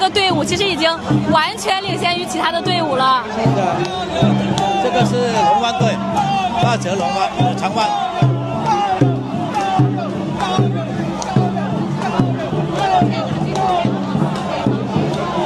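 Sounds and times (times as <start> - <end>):
speech: 0.0 - 8.4
excited spectators cheering and shouting: 0.0 - 15.4.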